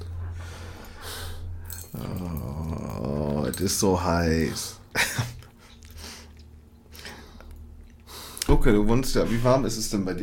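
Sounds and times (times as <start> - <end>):
exhausted, passive-aggressive breathing: 0.0 - 2.8, 5.6 - 8.5
speech: 3.6 - 5.2, 8.6 - 10.2.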